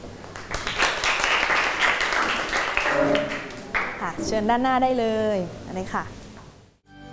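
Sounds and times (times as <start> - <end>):
classroom applause: 0.4 - 4.0
speech: 4.1 - 6.2.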